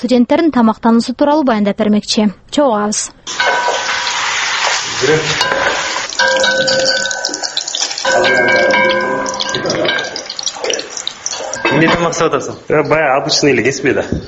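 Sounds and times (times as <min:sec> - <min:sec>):
speech: 0:00.0 - 0:04.1, 0:05.0 - 0:10.9, 0:11.7 - 0:14.2
food frying in a pan in a student dorm kitchen: 0:03.3 - 0:11.8.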